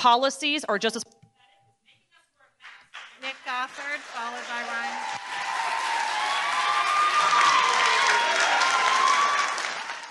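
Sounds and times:
speech: 0.0 - 1.2, 3.2 - 5.5
studio audience applause: 2.9 - 10.0.

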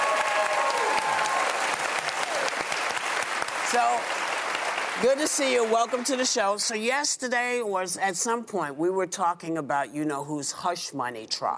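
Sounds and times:
voices cheering: 0.0 - 2.8
talk-show studio audience applauding to welcome a guest: 0.0 - 6.3
speech: 3.7 - 4.2, 5.0 - 11.5.

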